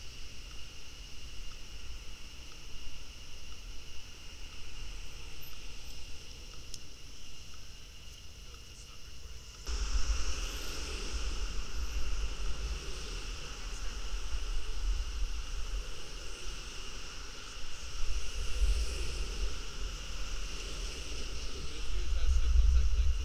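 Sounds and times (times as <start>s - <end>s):
traffic noise at an intersection recorded by a contact mic: 9.2s - 23.2s.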